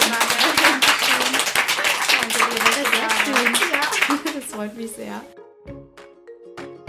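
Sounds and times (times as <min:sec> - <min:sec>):
applause: 0:00.0 - 0:04.8
speech: 0:04.6 - 0:05.8.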